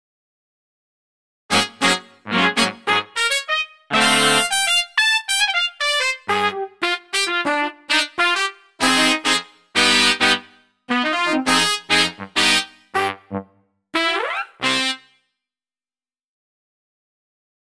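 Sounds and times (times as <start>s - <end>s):
brass: 1.5s - 15.2s.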